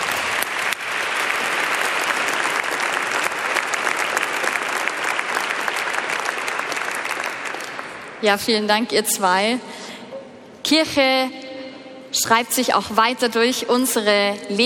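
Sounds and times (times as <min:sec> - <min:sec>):
audience applause: 0:00.0 - 0:08.2
speech: 0:08.2 - 0:10.0, 0:10.7 - 0:11.4, 0:12.1 - 0:14.6.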